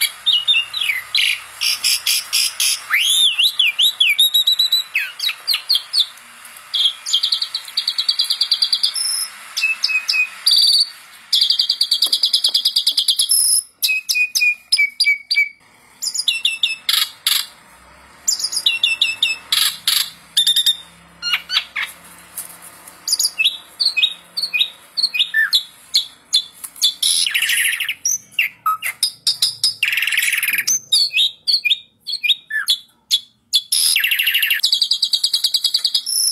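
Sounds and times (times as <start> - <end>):
Asian pied starling song of clicks and whistles: 0.0 - 17.6, 18.3 - 22.0, 23.0 - 36.3.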